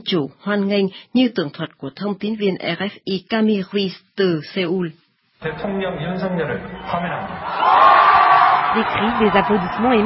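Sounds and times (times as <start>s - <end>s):
speech: 0.0s - 10.0s
crowd cheering and applause: 6.9s - 10.0s.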